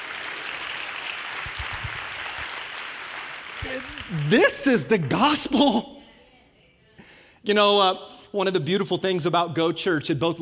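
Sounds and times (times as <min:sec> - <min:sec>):
audience clapping: 0:00.0 - 0:05.7
speech: 0:03.7 - 0:06.0, 0:07.4 - 0:10.4.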